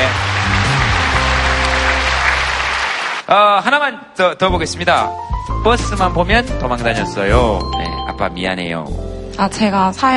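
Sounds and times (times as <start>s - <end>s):
audience applause: 0.0s - 3.3s
speech: 3.3s - 10.1s.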